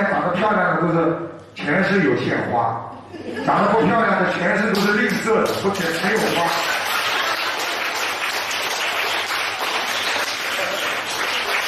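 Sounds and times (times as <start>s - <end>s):
speech: 0.0s - 6.8s
large crowd applause: 5.8s - 11.6s.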